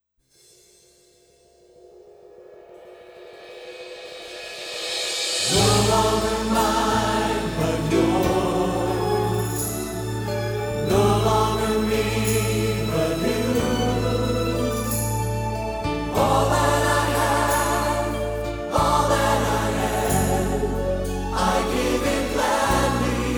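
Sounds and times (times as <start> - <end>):
chorus singing: 5.4 - 23.3.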